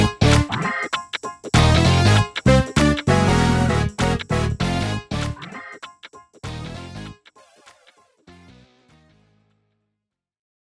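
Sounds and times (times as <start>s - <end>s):
drumless funk rock gospel jazz fusion jam: 0.0s - 7.1s.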